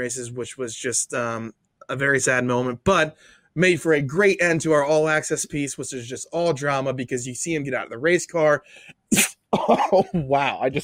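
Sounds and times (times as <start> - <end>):
speech: 0.0 - 10.8
sneeze: 9.1 - 10.0.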